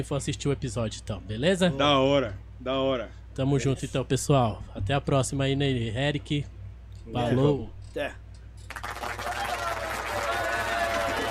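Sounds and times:
speech: 0:00.0 - 0:08.2
applause: 0:08.7 - 0:11.2.

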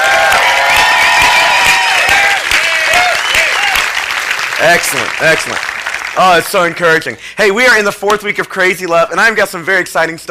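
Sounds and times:
audience hand clapping: 0:00.0 - 0:07.2
speech: 0:04.6 - 0:10.2.

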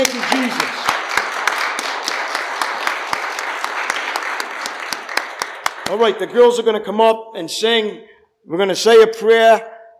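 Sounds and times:
audience applause: 0:00.0 - 0:06.3
speech: 0:06.0 - 0:09.7.

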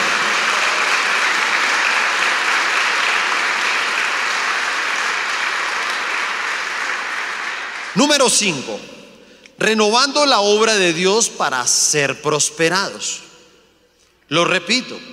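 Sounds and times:
large crowd applauding loudly: 0:00.0 - 0:08.5
speech: 0:08.0 - 0:09.0, 0:09.6 - 0:13.3, 0:14.3 - 0:15.1.

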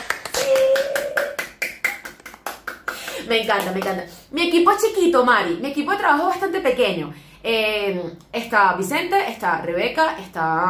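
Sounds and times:
hands clapping: 0:00.0 - 0:04.0
speech: 0:03.3 - 0:10.6.

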